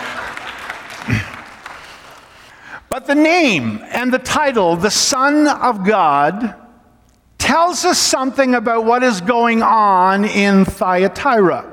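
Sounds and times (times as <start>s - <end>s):
audience applause: 0.0s - 2.5s
speech: 3.0s - 6.6s, 7.5s - 11.7s.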